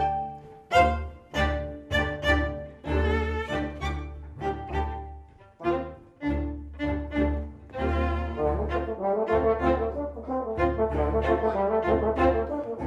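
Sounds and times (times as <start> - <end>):
tribute horn and strings music: 0.0 - 12.8.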